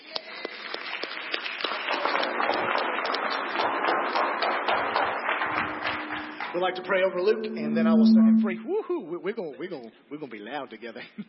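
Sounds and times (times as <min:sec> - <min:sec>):
audience clapping: 0:00.0 - 0:07.4
speech: 0:06.6 - 0:11.2.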